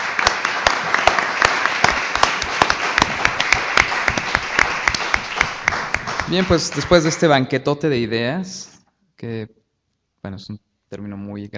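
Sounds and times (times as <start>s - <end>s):
audience applause for speakers: 0.0s - 7.4s
speech: 6.3s - 9.6s, 10.2s - 11.5s.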